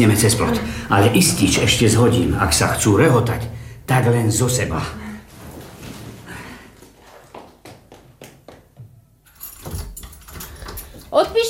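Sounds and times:
speech: 0:00.0 - 0:05.0
handling and shuffling: 0:05.3 - 0:08.0
bunch of keys jingling: 0:09.2 - 0:11.4.

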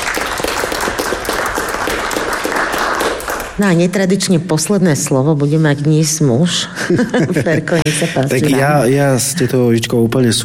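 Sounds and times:
audience applause: 0:00.0 - 0:03.6
speech: 0:03.6 - 0:10.4
laughter: 0:06.7 - 0:09.8.

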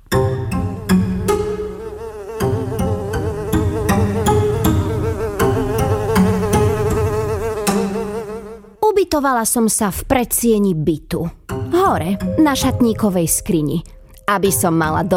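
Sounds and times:
fly buzzing: 0:00.5 - 0:08.8
speech: 0:09.2 - 0:15.1.

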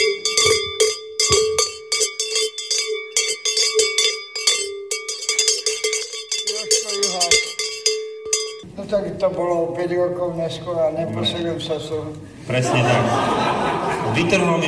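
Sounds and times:
bell being struck: 0:00.0 - 0:08.7
speech: 0:09.2 - 0:14.6
laughter: 0:12.5 - 0:14.6.

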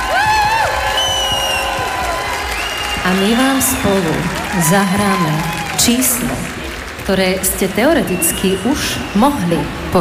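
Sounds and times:
large crowd applauding: 0:00.0 - 0:09.9
sharp whistles: 0:00.9 - 0:01.8, 0:02.5 - 0:03.9, 0:08.1 - 0:09.4
speech: 0:03.1 - 0:09.9.

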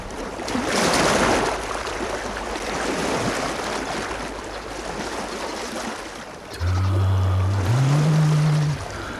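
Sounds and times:
calm sea waves: 0:00.0 - 0:09.1
loud low droning hum: 0:06.5 - 0:09.1.

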